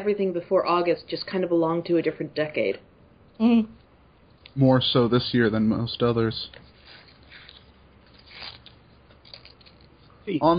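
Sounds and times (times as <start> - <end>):
speech: 0.0 - 3.8, 4.6 - 6.7, 10.3 - 10.5
paper rustling while folding origami: 6.4 - 10.2.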